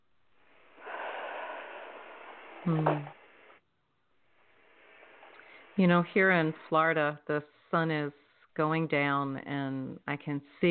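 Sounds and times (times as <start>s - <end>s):
deep breath with nasal snuffle: 0.3s - 3.6s, 4.3s - 5.8s
speech: 2.6s - 3.2s, 5.8s - 10.7s.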